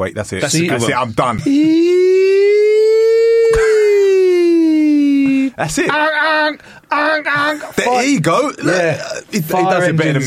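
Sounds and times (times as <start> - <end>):
speech: 0.0 - 2.0, 5.6 - 10.2
person imitating an emergency siren: 1.5 - 5.5.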